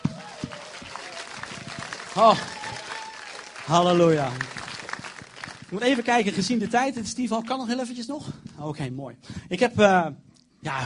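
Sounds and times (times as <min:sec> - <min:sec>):
audience clapping: 0:00.0 - 0:07.7
speech: 0:02.2 - 0:02.6, 0:03.7 - 0:04.6, 0:05.7 - 0:10.8.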